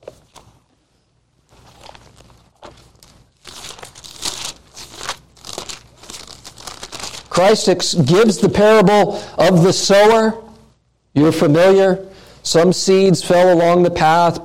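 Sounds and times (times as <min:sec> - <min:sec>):
thin Bible pages being turned: 0:00.0 - 0:00.8, 0:01.4 - 0:07.4
speech: 0:07.4 - 0:10.4, 0:11.2 - 0:14.4.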